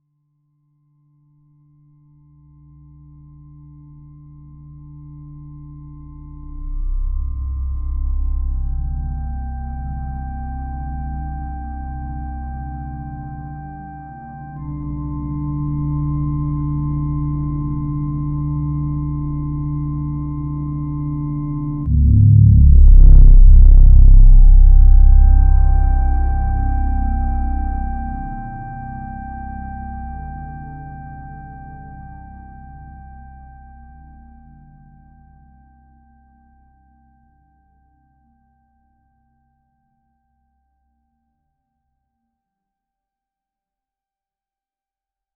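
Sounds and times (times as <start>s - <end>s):
slow rising dramatic suspense music: 6.3s - 10.9s, 14.9s - 30.4s.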